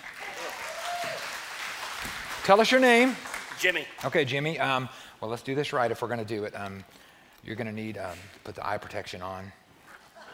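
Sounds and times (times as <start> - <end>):
audience clapping: 0.0 - 4.4
speech: 2.0 - 9.6.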